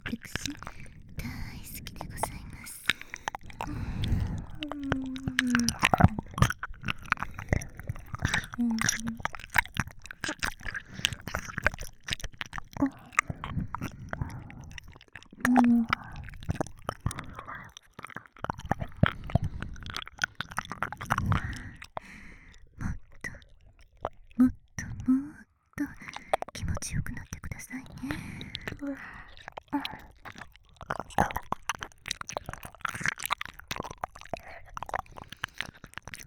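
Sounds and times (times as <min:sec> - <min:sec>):
binaural microphone whispering in both ears: 0:00.0 - 0:06.4, 0:07.2 - 0:09.3, 0:12.8 - 0:13.5, 0:15.4 - 0:16.2, 0:24.4 - 0:30.1
ear licking on binaural microphone: 0:00.0 - 0:24.4, 0:25.8 - 0:36.2.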